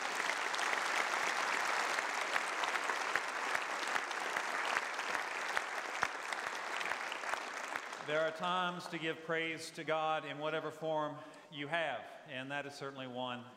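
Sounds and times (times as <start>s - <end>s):
church audience applauding: 0.0s - 8.8s
speech: 8.1s - 13.5s.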